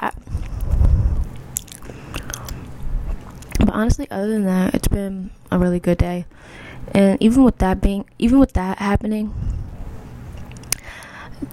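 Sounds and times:
biting and chewing cold chicken nuggets: 0:00.2 - 0:03.6
speech: 0:03.8 - 0:09.5.

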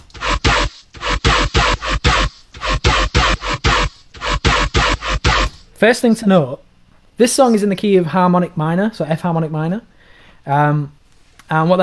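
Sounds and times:
three-layer dubstep bass sound: 0:00.0 - 0:05.7
speech: 0:05.8 - 0:11.8.

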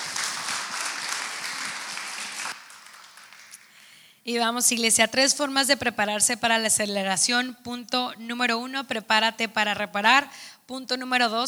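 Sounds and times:
crowd applause: 0:00.0 - 0:03.8
speech: 0:04.2 - 0:11.4.

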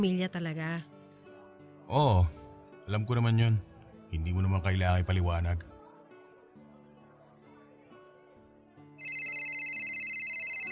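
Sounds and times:
speech: 0:00.0 - 0:00.9, 0:01.9 - 0:05.7
bright electronic phone ringtone: 0:09.0 - 0:10.7.

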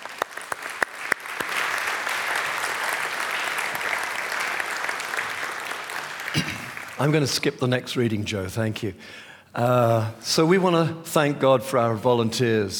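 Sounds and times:
audience applause: 0:00.0 - 0:07.3
speech: 0:06.3 - 0:12.7.

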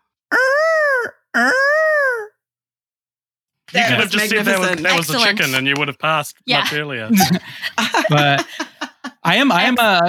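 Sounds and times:
person imitating a peacock call: 0:00.3 - 0:02.4
speech: 0:03.7 - 0:10.0
laughter: 0:03.8 - 0:05.9, 0:06.6 - 0:10.0.

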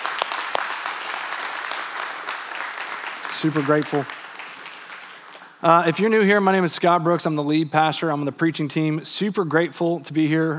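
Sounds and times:
crowd applause: 0:00.0 - 0:05.6
speech: 0:03.4 - 0:04.2, 0:05.6 - 0:10.5.

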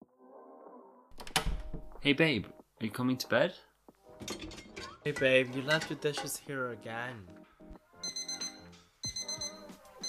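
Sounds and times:
speech: 0:02.0 - 0:04.4, 0:05.0 - 0:07.4
alarm going off: 0:08.0 - 0:10.0.

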